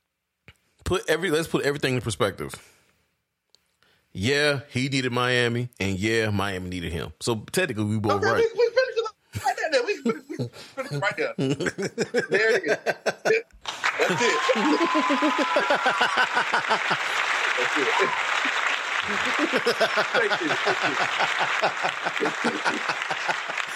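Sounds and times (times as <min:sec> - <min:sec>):
speech: 0:00.9 - 0:02.8, 0:04.2 - 0:08.6, 0:09.4 - 0:23.7
laughter: 0:08.4 - 0:23.7
applause sound effect sample: 0:13.6 - 0:23.7.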